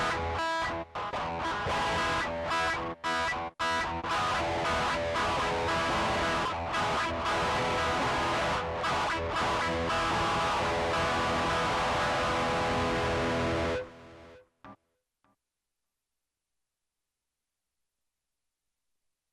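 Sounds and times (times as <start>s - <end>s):
guitar: 0.0s - 14.9s.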